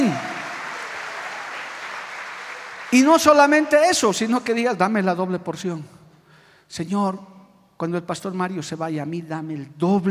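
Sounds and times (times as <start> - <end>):
crowd applauding: 0.0 - 3.8
speech: 2.9 - 6.0, 6.7 - 10.0.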